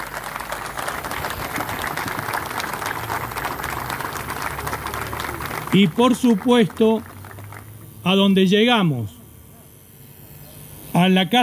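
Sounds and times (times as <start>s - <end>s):
applause: 0.0s - 7.8s
speech: 5.7s - 7.1s, 8.0s - 9.2s, 11.0s - 11.4s.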